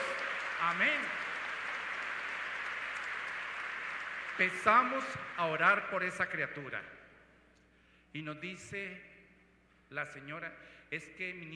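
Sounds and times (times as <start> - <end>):
audience applause: 0.0 - 5.8
speech: 0.6 - 1.3, 4.4 - 7.0, 8.1 - 9.1, 9.9 - 11.5.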